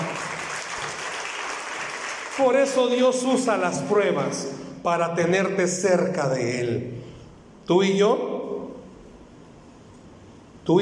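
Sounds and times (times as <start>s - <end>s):
audience applause: 0.0s - 2.9s
speech: 2.4s - 7.0s, 7.7s - 8.3s.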